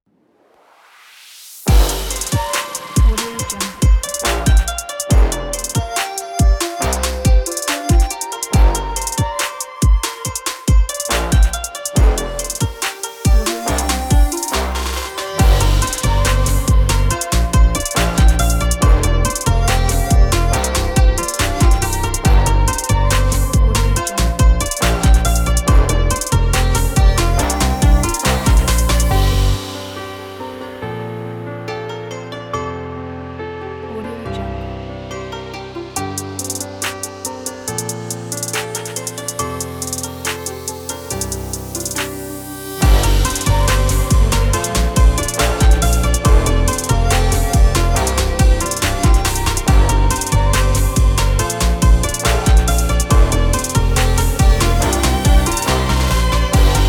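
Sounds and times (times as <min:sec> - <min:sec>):
Chinese catwalk fashion trap music: 0:01.7 - 0:29.6, 0:42.8 - 0:56.8.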